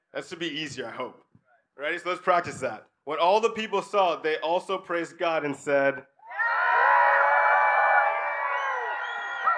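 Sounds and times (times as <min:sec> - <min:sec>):
speech: 0:00.2 - 0:06.1
church congregation cheering as loud as possible: 0:06.2 - 0:09.5.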